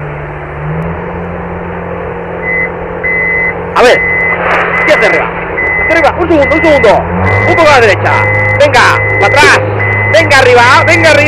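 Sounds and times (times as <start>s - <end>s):
crane lifting a load outside window: 2.2s - 11.2s
speech: 4.9s - 11.2s.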